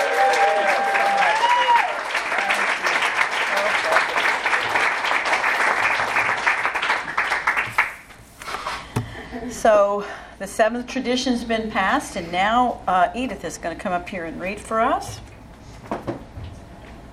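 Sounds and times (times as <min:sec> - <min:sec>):
audience applause for three speakers: 0:00.0 - 0:08.1
speech: 0:09.7 - 0:15.2.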